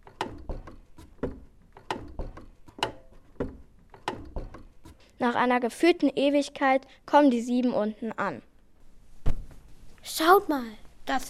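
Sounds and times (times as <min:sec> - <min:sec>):
wooden stairs creaking under slow footsteps: 0:00.0 - 0:05.0
speech: 0:05.2 - 0:08.5, 0:10.1 - 0:11.2.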